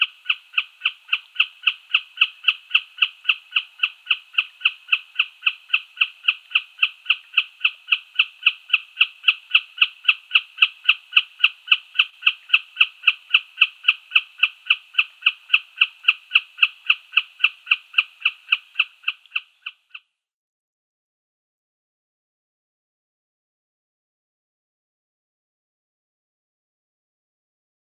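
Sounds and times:
common snipe display call: 0.0 - 20.1.

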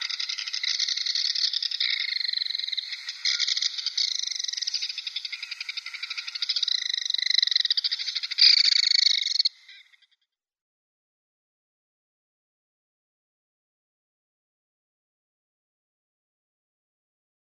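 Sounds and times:
Belted Kingfisher: 0.0 - 9.9.

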